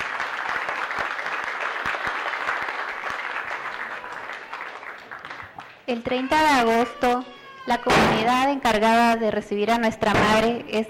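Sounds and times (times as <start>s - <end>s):
loud applause: 0.0s - 7.5s
speech: 5.9s - 10.8s.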